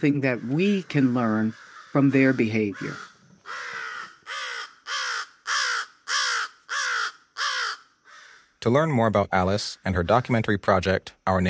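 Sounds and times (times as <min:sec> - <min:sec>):
speech: 0:00.0 - 0:03.6, 0:08.6 - 0:11.4
crow cawing: 0:00.1 - 0:08.6.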